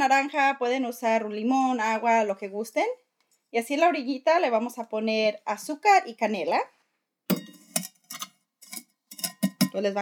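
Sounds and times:
speech: 0.0s - 7.4s, 9.8s - 9.9s
drinking glass being handled: 7.3s - 9.8s.

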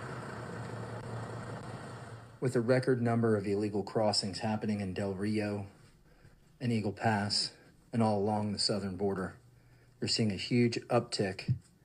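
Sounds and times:
bus engine idling: 0.0s - 2.4s
speech: 2.4s - 5.8s, 6.6s - 9.4s, 10.0s - 11.7s.

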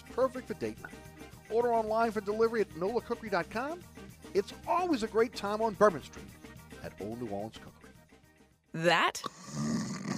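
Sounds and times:
speech: 0.2s - 7.8s, 8.7s - 9.7s
sleeper dosed with NyQuil Severe snoring: 9.2s - 10.1s.

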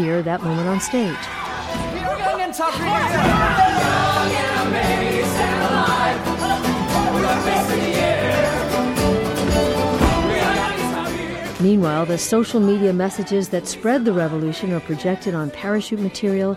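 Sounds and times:
speech: 0.0s - 6.3s, 11.6s - 16.5s
large crowd of protesters roaring and chattering: 0.0s - 13.0s
protesters cheering: 0.4s - 11.6s.

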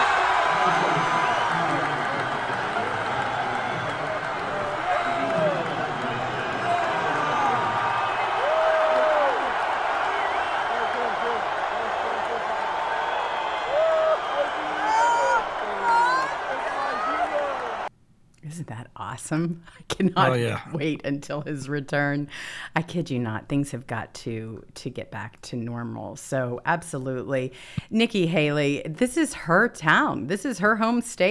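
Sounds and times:
high shouts and whoops from rally crowd: 0.0s - 17.9s
large rally crowd cheering: 0.0s - 17.9s
speech: 19.2s - 31.2s.

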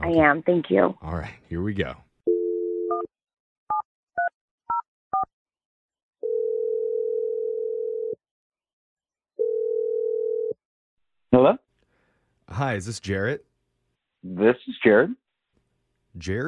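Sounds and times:
speech: 0.1s - 2.0s, 11.3s - 11.6s, 12.5s - 13.5s, 14.2s - 15.2s, 16.2s - 16.4s
telephone ringing tones: 2.3s - 3.1s, 6.2s - 8.2s, 9.4s - 10.6s
telephone dial tone: 6.2s - 8.2s, 9.4s - 10.6s.

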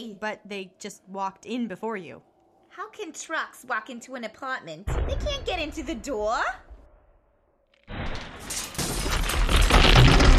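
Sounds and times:
speech: 0.0s - 6.7s
wrecking ball crashing through a wall: 7.9s - 10.3s.

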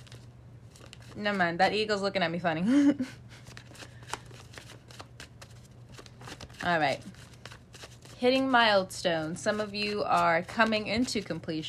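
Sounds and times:
tarot cards being shuffled: 0.0s - 1.4s, 3.3s - 8.6s, 9.2s - 11.4s
low constant hum: 0.0s - 11.6s
speech: 1.2s - 3.2s, 6.6s - 7.1s, 8.2s - 11.6s.

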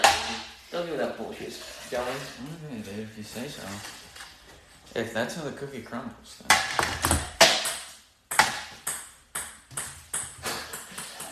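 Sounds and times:
speech: 1.0s - 4.1s, 4.9s - 7.2s
cup knocked over and rolling: 6.5s - 11.2s.

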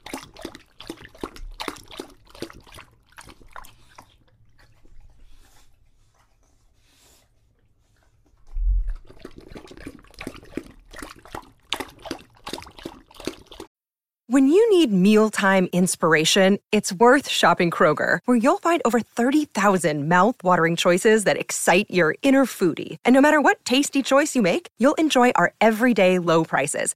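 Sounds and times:
English Bulldog lapping water: 0.0s - 13.7s
English Bulldog soft heavy breaths: 2.7s - 9.4s
speech: 14.4s - 26.9s.

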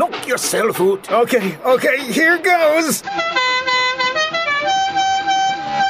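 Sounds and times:
speech: 0.3s - 3.4s
musical car horn playing a short melody: 3.0s - 5.8s.

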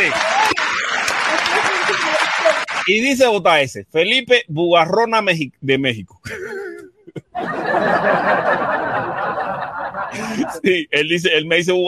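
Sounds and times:
laughter: 0.0s - 3.0s, 6.2s - 10.9s
applause: 0.0s - 3.2s
speech: 2.9s - 9.3s, 10.1s - 11.8s.

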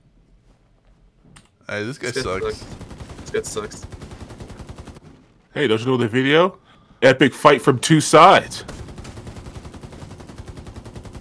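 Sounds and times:
speech: 1.7s - 4.0s, 5.6s - 8.8s
rapid automatic gunfire in a video game: 2.2s - 5.2s, 8.5s - 11.2s.

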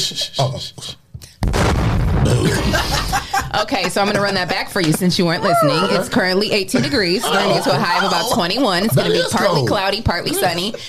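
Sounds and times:
speech: 0.1s - 1.0s, 3.6s - 10.8s
bomb explosion sound effect: 1.4s - 3.2s
laughter: 2.4s - 10.8s.

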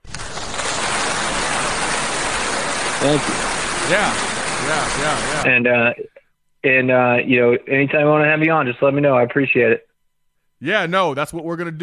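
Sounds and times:
round of applause: 0.1s - 5.5s
speech: 3.0s - 9.9s, 10.6s - 11.8s.

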